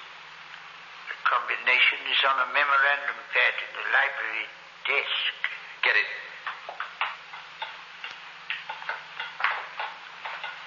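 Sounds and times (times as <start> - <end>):
speech: 1.3 - 6.2
dull hollow taps on a floor: 6.4 - 10.6.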